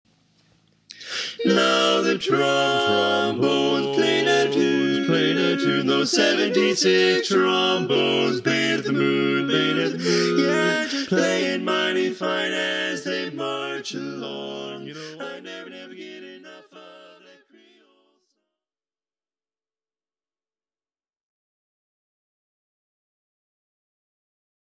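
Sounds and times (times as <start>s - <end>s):
baritone voice: 0.9s - 17.8s.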